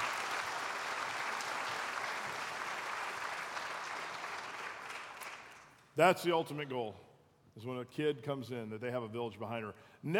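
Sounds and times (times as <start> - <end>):
audience applause: 0.0 - 5.8
speech: 6.0 - 10.1.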